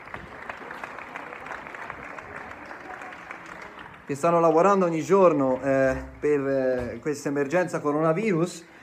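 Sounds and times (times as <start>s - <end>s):
crowd applauding doctors from balconies: 0.0s - 6.0s
speech: 4.1s - 8.7s.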